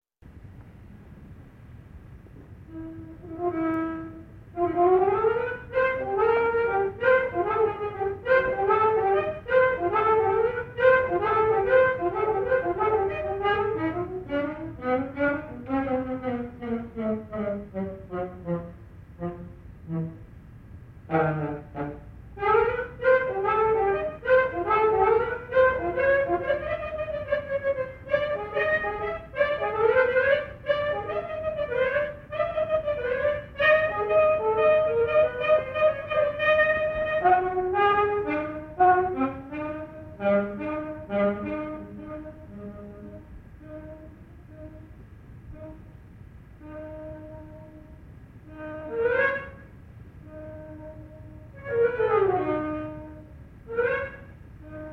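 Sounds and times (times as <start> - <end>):
saxophone: 2.4 - 54.9.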